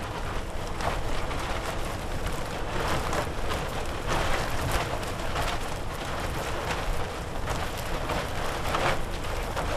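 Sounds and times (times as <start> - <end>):
plastic tarp moving: 0.0 - 9.7.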